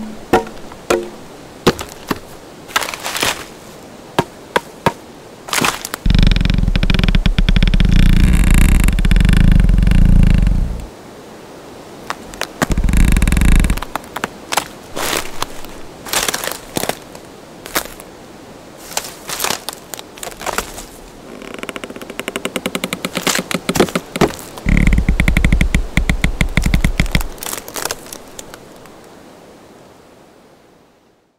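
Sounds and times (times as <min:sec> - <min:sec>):
wood impacts: 0:00.0 - 0:03.5, 0:04.2 - 0:10.8, 0:12.4 - 0:17.0, 0:21.6 - 0:28.6
wood cracks: 0:00.0 - 0:03.6, 0:04.2 - 0:10.9, 0:12.1 - 0:17.1, 0:18.8 - 0:29.0
trees creaking: 0:00.0 - 0:10.9, 0:12.0 - 0:18.1, 0:18.8 - 0:29.1
forest textures: 0:00.0 - 0:30.7.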